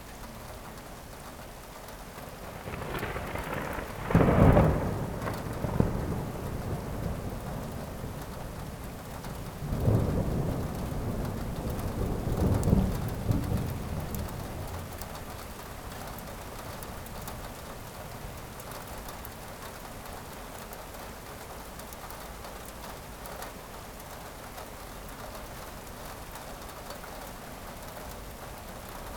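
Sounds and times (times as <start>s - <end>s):
distant thunder: 2.5s - 15.6s.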